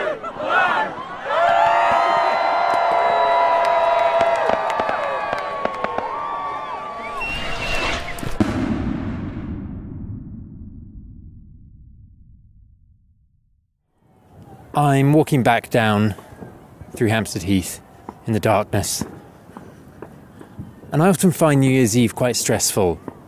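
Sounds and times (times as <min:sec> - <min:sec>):
New Year's crowd cheering and whooping: 0:00.0 - 0:08.2
firework bangs and crackles: 0:07.1 - 0:11.2, 0:18.1 - 0:20.9
speech: 0:14.8 - 0:16.2, 0:17.0 - 0:19.1, 0:21.0 - 0:23.1.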